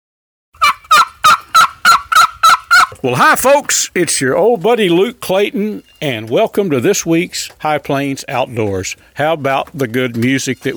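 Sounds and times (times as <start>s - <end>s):
wild turkey yelping: 0.6s - 3.4s
speech: 3.0s - 10.7s.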